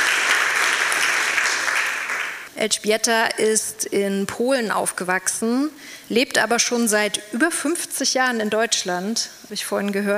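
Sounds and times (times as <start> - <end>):
audience applause at a talk about a forced-labour camp in Leipzig: 0.0 - 2.5
speech: 2.6 - 10.1.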